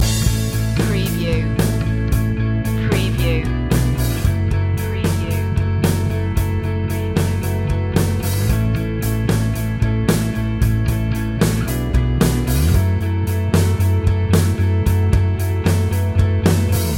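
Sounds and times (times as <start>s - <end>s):
breakdown music loop: 0.0s - 16.9s.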